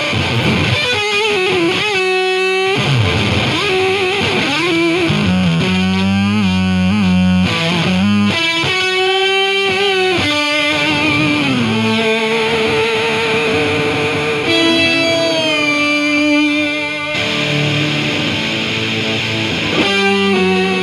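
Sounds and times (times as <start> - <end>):
guitar solo: 0.0 - 20.8.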